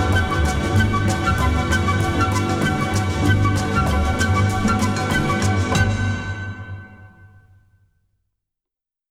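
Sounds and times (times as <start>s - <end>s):
string orchestra: 0.0s - 7.1s.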